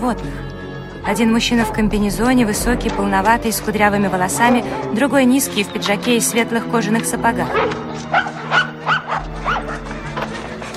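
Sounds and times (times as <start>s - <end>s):
speech: 0.0s - 8.6s
terrier barking: 1.0s - 2.0s, 4.2s - 5.1s, 7.5s - 9.9s.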